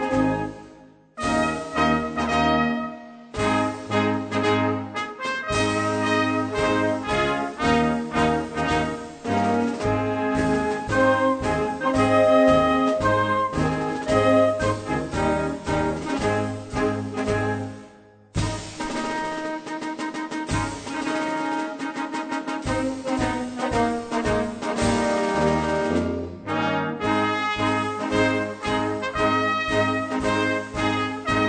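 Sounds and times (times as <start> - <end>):
solo brass fanfare: 0.0 - 31.4.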